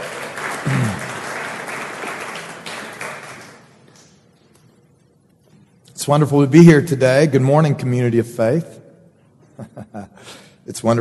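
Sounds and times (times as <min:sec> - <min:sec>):
crowd applauding: 0:00.0 - 0:04.2
low vocal murmur: 0:00.6 - 0:01.2
speech: 0:06.0 - 0:08.8, 0:09.6 - 0:11.0.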